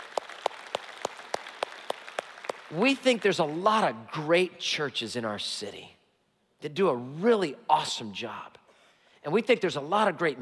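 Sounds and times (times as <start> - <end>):
audience applause at a church service: 0.0 - 4.0
speech: 2.7 - 6.0, 6.6 - 8.6, 9.2 - 10.3.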